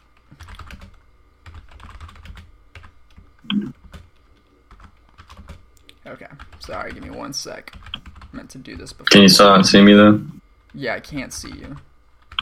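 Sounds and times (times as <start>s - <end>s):
typing on a computer keyboard: 0.0s - 3.2s, 3.8s - 5.6s, 6.4s - 8.3s, 11.4s - 12.4s
speech: 6.1s - 11.9s.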